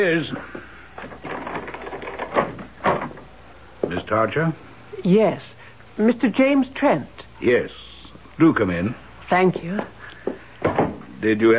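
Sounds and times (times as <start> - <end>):
speech: 0.0 - 0.7, 4.1 - 7.8, 8.4 - 10.0, 11.2 - 11.5
door opening with clunks and rattles: 1.0 - 3.3, 10.6 - 11.0.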